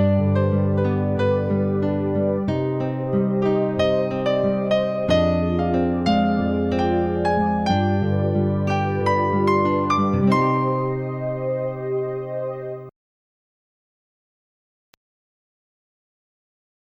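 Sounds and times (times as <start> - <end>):
harmonic minor scale: 0.0 - 12.9.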